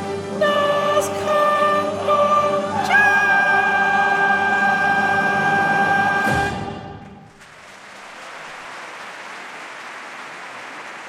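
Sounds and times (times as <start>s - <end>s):
soprano voices singing: 0.0s - 7.2s.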